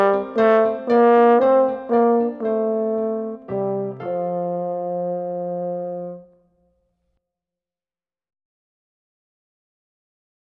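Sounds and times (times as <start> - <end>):
waltz solo with accompaniment: 0.0 - 6.2.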